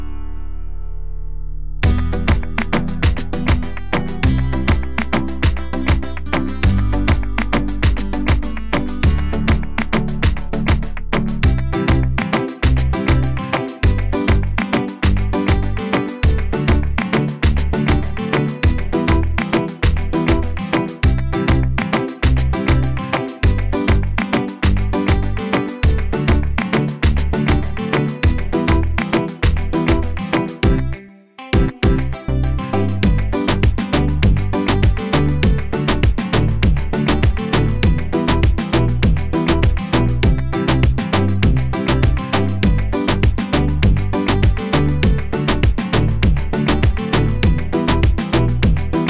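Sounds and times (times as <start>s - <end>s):
urban reggaeton sample kit: 1.8s - 30.9s, 31.6s - 32.1s, 33.0s - 49.0s.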